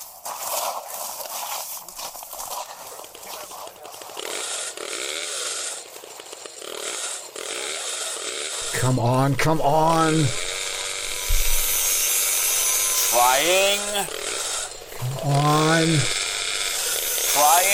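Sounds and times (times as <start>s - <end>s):
jaws of life hydraulic rescue tool roaring: 4.0s - 17.7s
speech: 8.8s - 10.4s, 13.2s - 14.2s, 15.2s - 16.2s, 17.4s - 17.7s.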